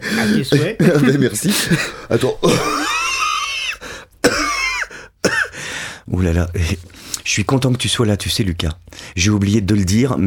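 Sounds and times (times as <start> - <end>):
gasp: 0.0 - 0.4, 3.8 - 4.2, 4.9 - 6.1
speech: 0.1 - 3.0, 6.2 - 10.2
laughter: 0.2 - 3.8
harsh raspy coughs from choking on saliva: 1.5 - 5.8.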